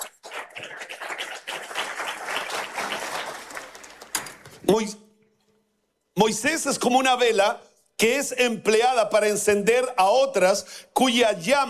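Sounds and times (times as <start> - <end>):
crowd applause: 0.0 - 4.2
speech: 4.7 - 5.0, 6.2 - 11.6.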